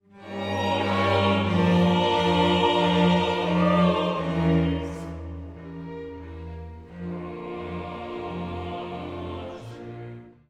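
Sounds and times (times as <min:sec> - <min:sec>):
sacred vocal music: 0:00.2 - 0:05.7, 0:06.9 - 0:10.3.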